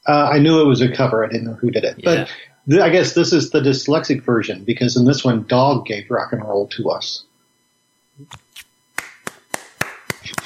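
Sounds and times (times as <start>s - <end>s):
speech: 0.0s - 7.3s, 8.2s - 8.4s
hand clapping: 8.9s - 10.4s.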